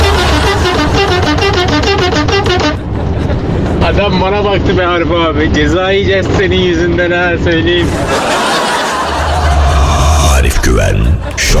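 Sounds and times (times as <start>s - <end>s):
car horn honking: 0.0s - 2.9s
speech: 4.0s - 8.4s
laughter: 7.8s - 11.5s.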